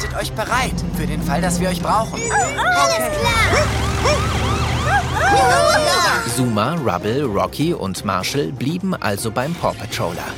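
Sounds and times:
speech: 0:00.1 - 0:10.3
police car siren: 0:02.1 - 0:06.6.

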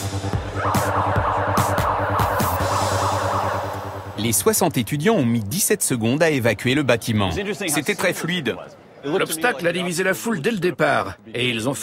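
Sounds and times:
building fire alarm: 0:00.5 - 0:04.2
speech: 0:04.2 - 0:11.8.

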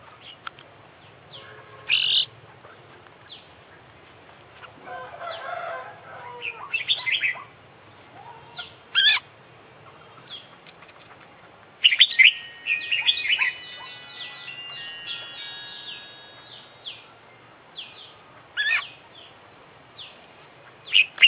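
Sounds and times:
Oriental magpie-robin song: 0:01.9 - 0:03.5, 0:06.4 - 0:07.6, 0:08.3 - 0:09.3, 0:10.0 - 0:17.2, 0:17.8 - 0:19.4, 0:20.0 - 0:21.2.

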